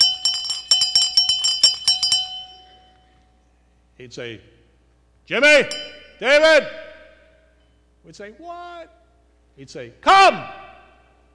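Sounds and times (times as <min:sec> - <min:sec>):
dinner bell ringing: 0:00.0 - 0:03.2, 0:05.7 - 0:06.2
speech: 0:04.0 - 0:04.6, 0:05.3 - 0:06.8, 0:08.0 - 0:09.0, 0:09.6 - 0:10.6.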